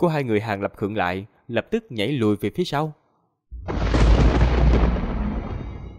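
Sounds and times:
speech: 0.0s - 3.0s
continuous dense thunder: 3.5s - 5.9s.

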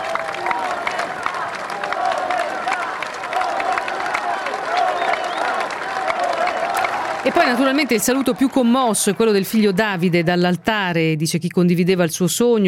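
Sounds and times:
many voices chanting a word in unison: 0.0s - 9.2s
large crowd of activists applauding: 0.0s - 10.9s
speech: 7.2s - 12.6s.

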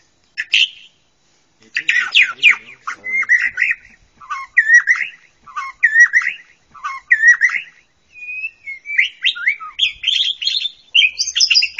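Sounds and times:
bird song of trills, squeaky whistles and scratchy chattering: 0.0s - 1.0s, 1.7s - 11.7s.

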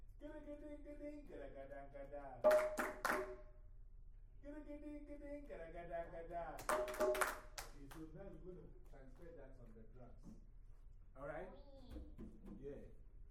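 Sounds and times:
speech: 0.2s - 3.5s, 4.4s - 10.5s, 11.2s - 13.0s
hand claps in a drum lesson rhythm exercise: 2.5s - 3.5s, 6.6s - 8.0s.

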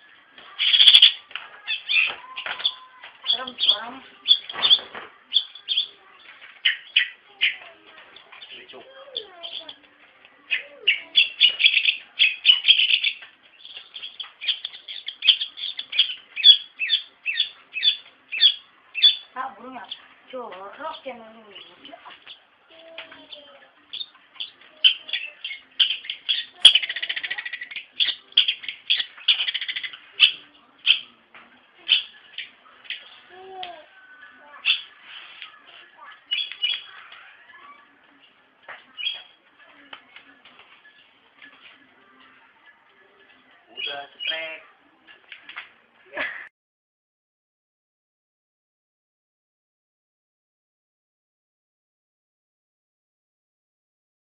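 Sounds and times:
bird song: 0.0s - 31.2s, 31.8s - 39.4s, 43.7s - 44.7s.

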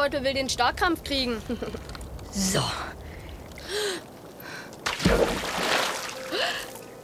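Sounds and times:
speech: 0.0s - 3.0s, 5.0s - 5.6s
splash of person jumping into icy water: 4.8s - 6.2s.

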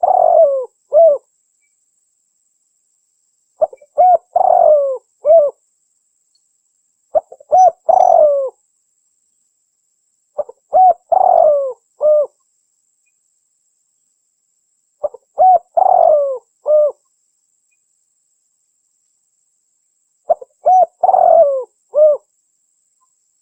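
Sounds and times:
spotted dove cooing: 0.0s - 1.3s, 3.6s - 5.6s, 7.1s - 8.6s, 10.4s - 12.3s, 15.0s - 17.0s, 20.3s - 22.3s.

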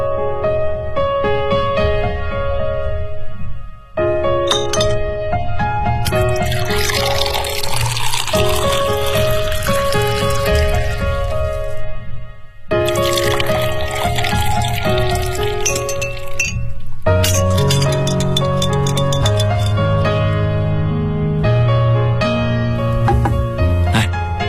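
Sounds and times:
tonal music: 0.0s - 24.4s
glasses clinking while a blue cocktail is mixed: 4.5s - 5.0s, 6.1s - 11.7s, 12.9s - 20.1s
cocktail of white rum, blue curaçao, pineapple and lemon juice splashing: 6.0s - 11.8s, 12.8s - 20.2s.

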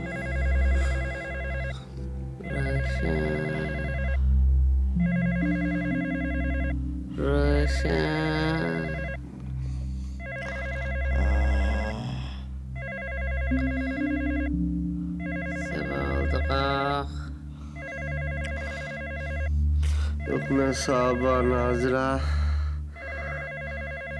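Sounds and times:
telephone bell ringing: 0.0s - 4.2s, 5.0s - 6.8s, 8.4s - 9.3s, 10.2s - 11.8s, 12.8s - 16.8s, 17.8s - 19.5s, 20.2s - 22.2s, 23.0s - 24.1s
low continuous droning hum: 0.0s - 23.0s
speech: 3.0s - 3.4s, 7.7s - 8.3s, 20.5s - 22.4s.

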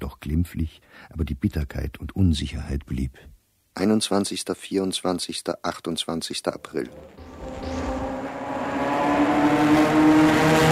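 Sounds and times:
speech: 0.2s - 7.7s
car engine driving: 6.7s - 10.7s.

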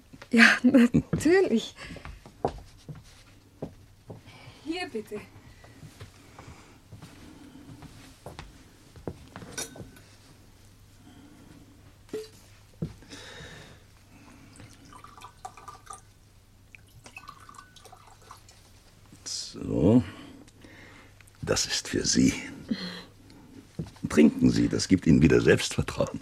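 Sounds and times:
low steady hum: 0.0s - 26.1s
speech: 0.3s - 2.6s, 4.7s - 5.4s, 22.1s - 22.5s, 24.2s - 26.1s
glasses clinking: 9.5s - 10.0s, 17.1s - 18.3s
Scotch whisky pouring into two glasses: 14.3s - 18.6s.

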